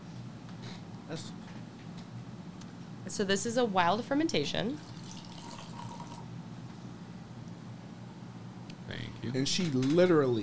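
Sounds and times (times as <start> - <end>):
speech: 1.1 - 1.5, 3.1 - 4.9, 9.3 - 10.4
cider pouring into a glass: 4.7 - 6.3
cider soft fizz: 4.7 - 6.3.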